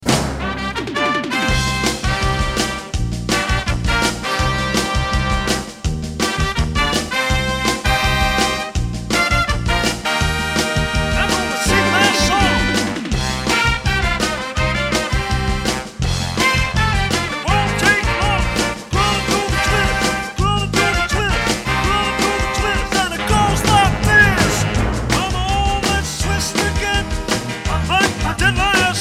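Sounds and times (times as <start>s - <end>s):
rock and roll music: 0.0s - 29.0s.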